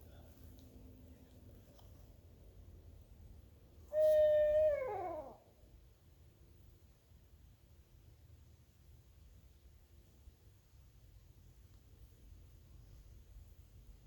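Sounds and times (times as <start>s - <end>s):
owl giving a drawn-out downward-bending hoot: 3.9s - 5.5s.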